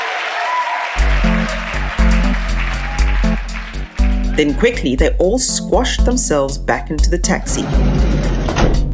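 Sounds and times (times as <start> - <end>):
choir cheering and clapping: 0.0 - 4.8
speech: 4.4 - 8.8.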